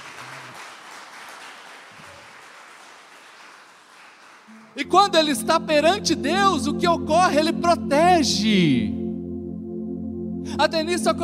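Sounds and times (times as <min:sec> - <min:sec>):
audience applause: 0:00.0 - 0:04.9
speech: 0:04.5 - 0:09.0, 0:10.6 - 0:11.2.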